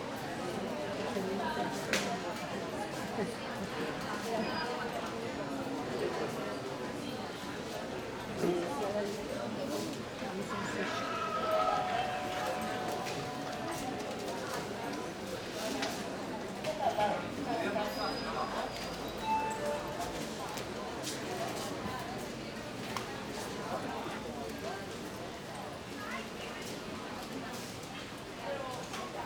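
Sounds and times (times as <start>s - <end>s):
murmur of people in a sanatorium entrance hall: 0.0s - 29.2s
call bells ringing in a sanatorium entrance hall: 11.3s - 15.9s, 18.1s - 20.5s.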